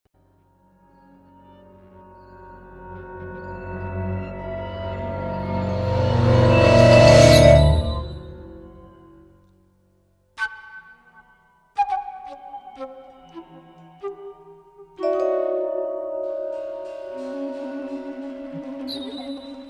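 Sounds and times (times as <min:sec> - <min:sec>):
ghost clusters: 0:03.2 - 0:08.8, 0:15.1 - 0:19.6.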